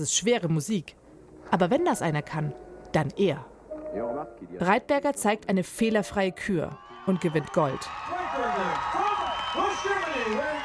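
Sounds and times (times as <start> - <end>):
speech: 0.0 - 9.0
large crowd applauding: 6.8 - 10.6.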